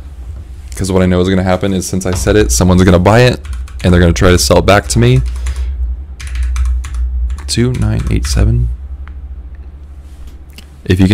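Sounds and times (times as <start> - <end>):
loud low steady hum: 0.0 - 11.1
speech: 0.8 - 5.4, 7.5 - 8.8, 10.9 - 11.1
typing card details on a computer keyboard: 2.2 - 8.7.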